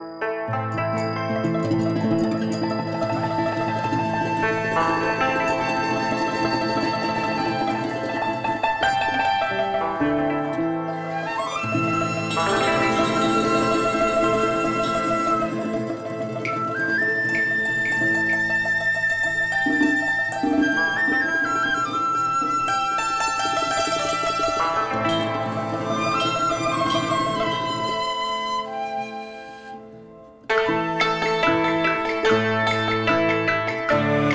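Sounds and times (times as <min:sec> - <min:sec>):
traditional Chinese music: 0:00.0 - 0:34.3.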